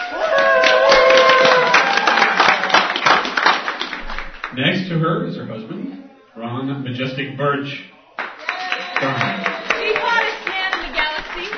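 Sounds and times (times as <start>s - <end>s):
live audience cheering: 0.0s - 4.2s, 8.0s - 11.5s
speech: 4.6s - 7.9s, 9.0s - 9.4s.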